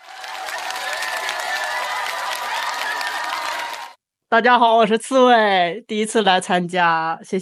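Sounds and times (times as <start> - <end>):
audience applause welcoming a guest onto a stage: 0.0 - 4.0
speech: 4.3 - 7.4.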